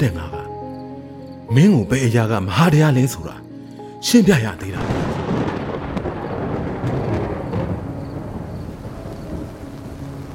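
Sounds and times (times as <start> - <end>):
speech: 0.0 - 0.4, 1.5 - 3.4, 4.0 - 5.2
deep rumble of thunder: 4.8 - 10.3
rain falling: 4.8 - 10.3.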